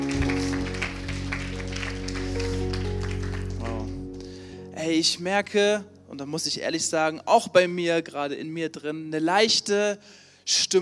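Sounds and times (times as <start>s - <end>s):
audience applause: 0.0s - 4.4s
speech: 4.9s - 10.7s.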